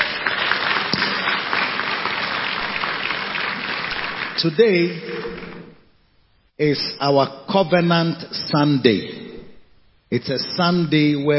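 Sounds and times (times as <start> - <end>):
audience clapping: 0.0 - 5.8
speech: 4.4 - 5.5, 6.6 - 9.2, 10.1 - 11.3.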